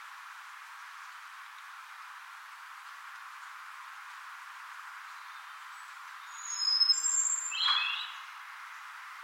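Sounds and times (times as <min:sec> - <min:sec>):
soft hiss: 0:00.0 - 0:09.2
European robin singing: 0:05.1 - 0:08.3.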